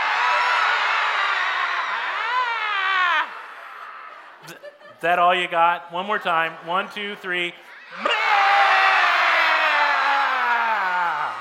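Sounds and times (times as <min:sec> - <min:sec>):
church audience yelling together: 0:00.0 - 0:04.4, 0:07.6 - 0:11.3
laughter: 0:02.4 - 0:05.5
speech: 0:05.0 - 0:08.1.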